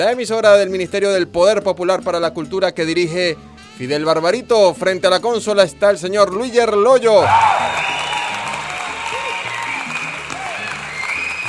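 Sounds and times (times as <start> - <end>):
speech: 0.0 - 8.0
applause and cheering in the studio: 7.2 - 11.4.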